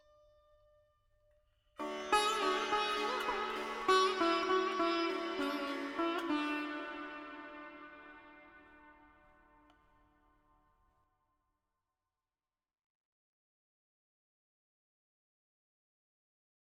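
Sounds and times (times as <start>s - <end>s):
veena melody in D at 100 bpm with effects: 1.8s - 10.6s.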